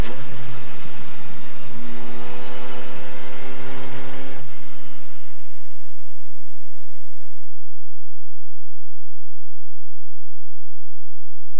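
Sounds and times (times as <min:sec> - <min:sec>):
Bugatti T35B racing car engine: 0:00.0 - 0:07.5.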